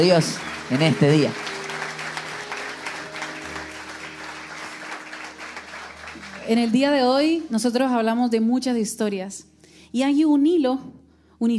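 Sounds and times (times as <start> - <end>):
speech: 0.0 - 1.5, 6.5 - 11.5
audience applause: 0.0 - 7.5.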